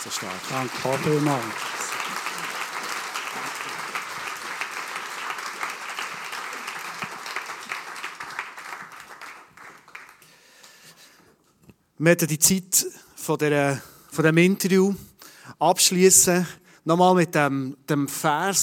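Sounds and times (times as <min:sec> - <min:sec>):
speech: 0:00.0 - 0:01.8, 0:12.0 - 0:18.6
audience applause: 0:00.0 - 0:10.5.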